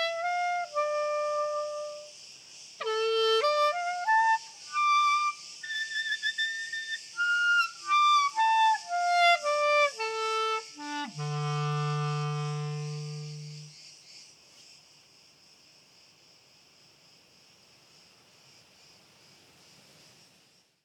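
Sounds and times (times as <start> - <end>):
crickets chirping: 0.0 - 20.8
wind: 0.0 - 20.8.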